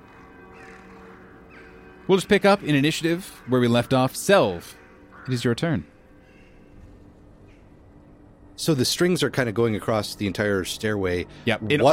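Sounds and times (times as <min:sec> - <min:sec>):
chorus of blackbirds cawing: 0:00.0 - 0:08.4
bells ringing in the wind: 0:00.0 - 0:11.9
speech: 0:02.1 - 0:05.9, 0:08.6 - 0:11.9.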